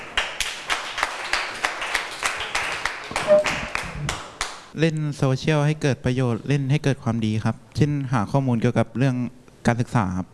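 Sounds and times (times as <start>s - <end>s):
students clapping for a classmate: 0.0s - 4.6s
speech: 4.8s - 10.3s.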